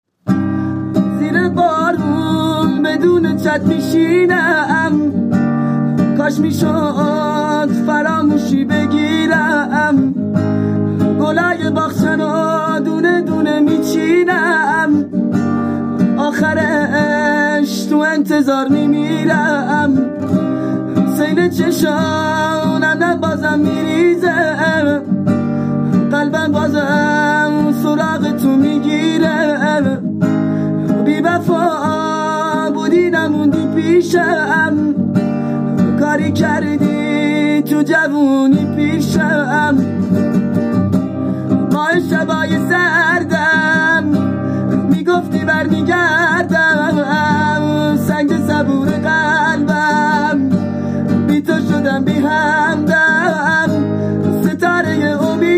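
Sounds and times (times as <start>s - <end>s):
guitar: 0.0s - 55.5s.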